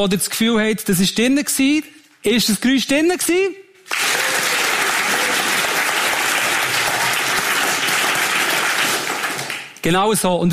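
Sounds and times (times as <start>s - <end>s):
speech: 0.0s - 4.1s, 9.8s - 10.5s
audience applause: 3.9s - 9.8s.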